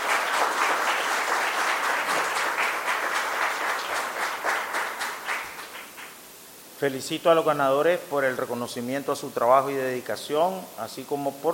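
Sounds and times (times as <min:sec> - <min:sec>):
audience applause: 0:00.0 - 0:06.2
speech: 0:06.8 - 0:11.5.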